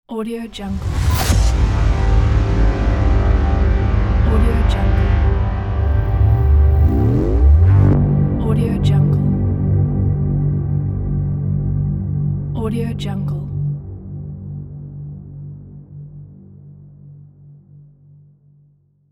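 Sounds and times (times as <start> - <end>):
mysterious music: 0.8 - 18.1.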